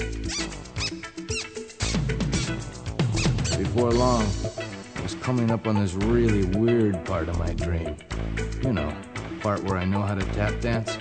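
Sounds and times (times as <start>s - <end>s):
shoes squeaking: 0.2s - 3.8s
speech: 3.7s - 4.5s, 5.2s - 10.9s.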